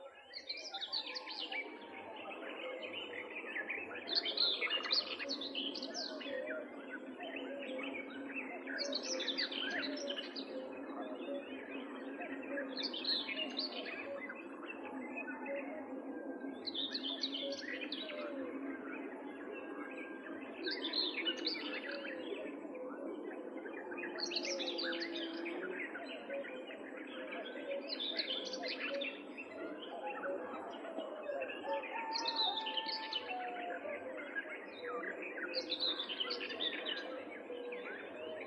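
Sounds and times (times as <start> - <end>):
Common Whitethroat twittering song: 0.0 - 38.4.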